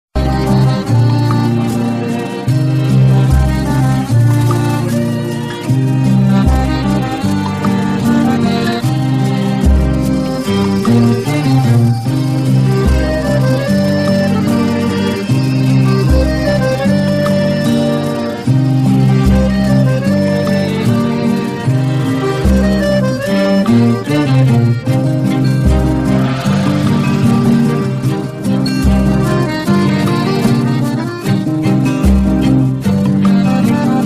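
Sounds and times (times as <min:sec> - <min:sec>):
instrumental music: 0:00.2 - 0:34.0.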